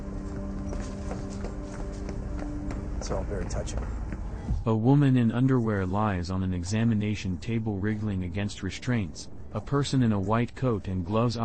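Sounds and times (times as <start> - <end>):
footsteps of a man running down a hall: 0.0 - 4.6
speech: 3.0 - 11.4.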